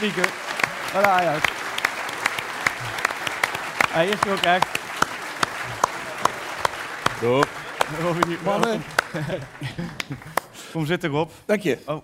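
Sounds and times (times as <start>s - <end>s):
speech: 0.0s - 1.6s, 3.9s - 4.8s, 7.2s - 12.0s
audience applause: 0.0s - 10.7s
laughter: 7.2s - 10.7s.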